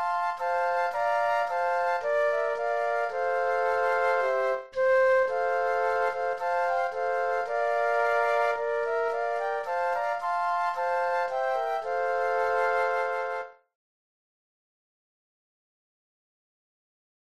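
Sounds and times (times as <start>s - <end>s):
flute trio playing: 0.0s - 13.6s.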